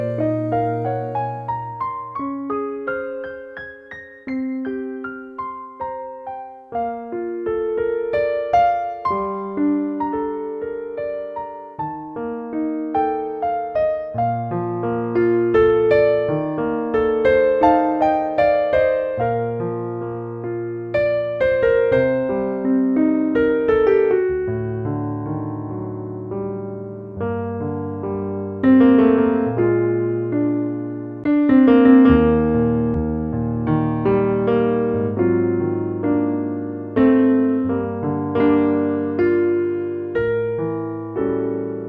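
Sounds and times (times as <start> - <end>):
person singing: 0.0 - 2.1
piano: 0.0 - 41.8.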